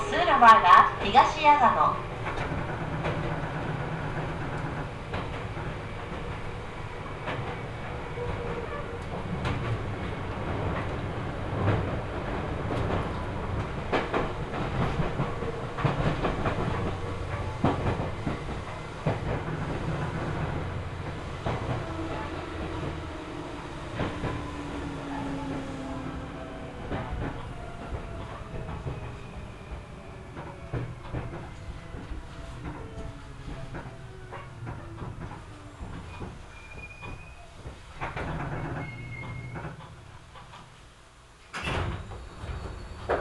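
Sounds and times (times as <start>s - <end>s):
Seibu Chichibu Line train rolling along rails: 0.0s - 43.1s
speech: 0.4s - 3.2s
faint squealing tones from train: 38.8s - 39.7s.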